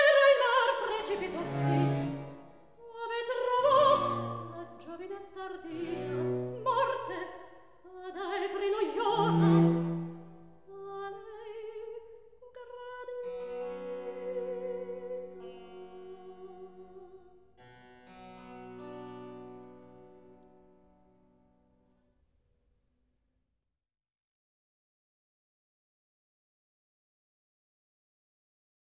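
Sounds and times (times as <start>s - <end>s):
recitative singing: 0.0s - 12.0s, 12.6s - 17.3s.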